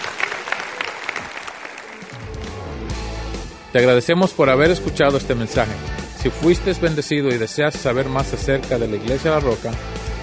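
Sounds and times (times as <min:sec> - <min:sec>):
church audience applause: 0:00.0 - 0:02.8
speech: 0:03.7 - 0:10.1.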